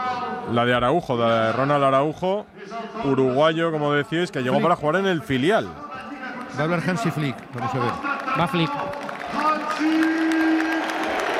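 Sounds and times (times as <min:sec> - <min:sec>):
speech: 0:00.5 - 0:05.9, 0:06.5 - 0:08.8
stadium crowd ovation at the Camp Nou football ground: 0:06.0 - 0:11.3.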